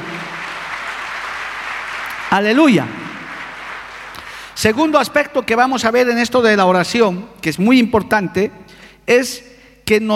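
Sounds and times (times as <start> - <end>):
audience applause: 0.0 - 4.6
speech: 2.3 - 3.0, 4.6 - 10.1.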